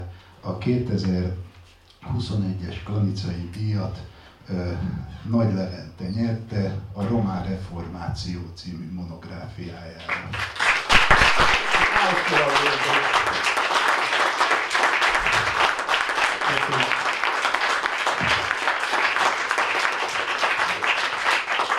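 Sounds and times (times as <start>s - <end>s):
speech: 0.4s - 13.6s
audience applause: 10.0s - 21.7s.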